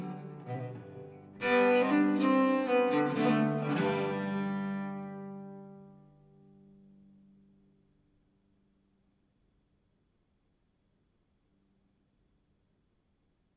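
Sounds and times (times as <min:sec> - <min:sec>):
lyra viol playing a jig: 0:00.0 - 0:06.0.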